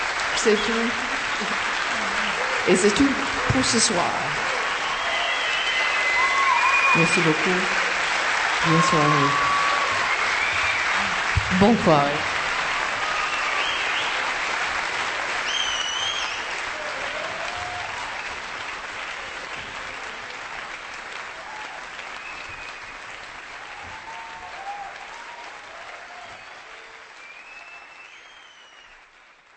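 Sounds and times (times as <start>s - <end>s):
concert audience applause: 0.0s - 29.5s
speech: 0.4s - 1.6s, 2.6s - 4.5s, 6.9s - 7.8s, 8.6s - 9.5s, 11.5s - 12.3s
whistles: 4.7s - 7.2s, 9.4s - 11.0s, 13.1s - 14.2s, 15.4s - 16.6s, 22.2s - 23.0s, 26.2s - 29.0s.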